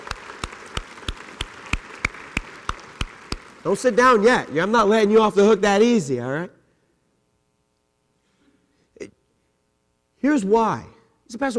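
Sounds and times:
audience applause: 0.0s - 4.4s
speech: 3.6s - 6.6s, 10.3s - 11.5s.

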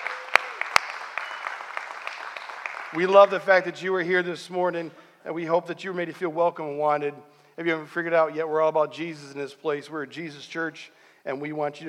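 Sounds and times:
church congregation applauding: 0.0s - 3.6s
speech: 2.9s - 11.8s.

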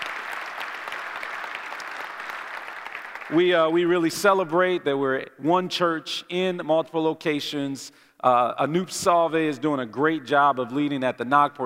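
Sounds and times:
audience applause: 0.0s - 3.4s
speech: 3.3s - 11.6s.

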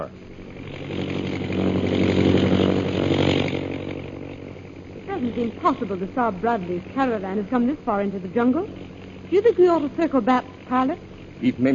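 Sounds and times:
propeller airplane engine droning overhead: 0.0s - 11.7s
speech: 5.4s - 11.7s.

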